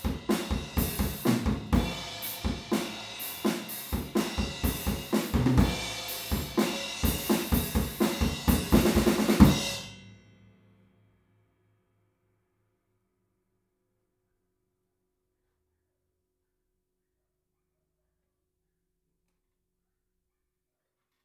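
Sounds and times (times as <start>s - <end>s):
drums recorded with PZM omni stereo microphones: 0.0s - 10.5s.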